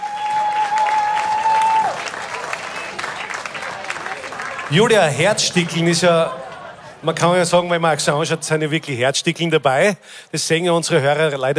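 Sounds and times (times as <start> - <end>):
audience applause: 0.0 - 6.9
speech: 4.7 - 6.4, 7.0 - 11.5
laughter: 4.8 - 7.6.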